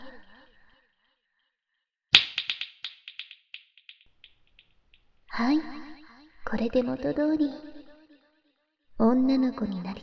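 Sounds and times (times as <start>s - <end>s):
finger snap with echo repeats: 2.2s - 4.4s
speech: 5.4s - 5.8s, 6.5s - 7.7s, 9.0s - 10.0s.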